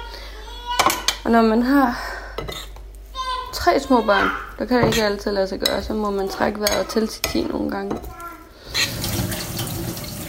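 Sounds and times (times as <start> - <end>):
speech: 1.2 - 2.6, 3.6 - 8.2
running tap water while washing dishes: 8.7 - 10.2.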